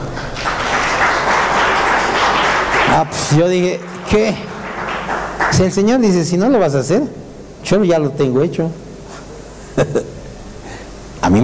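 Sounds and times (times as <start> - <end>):
audience applause: 0.0 - 6.3
speech: 3.0 - 4.5, 5.5 - 8.8, 9.8 - 10.1, 11.2 - 11.4.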